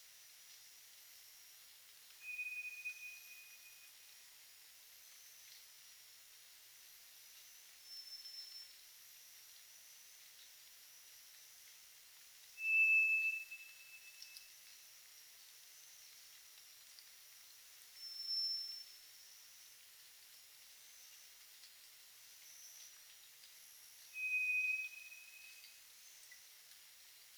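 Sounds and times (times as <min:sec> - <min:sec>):
hiss: 0:00.0 - 0:27.3
White's thrush whistle song: 0:02.2 - 0:03.5, 0:12.6 - 0:14.3, 0:24.2 - 0:25.6.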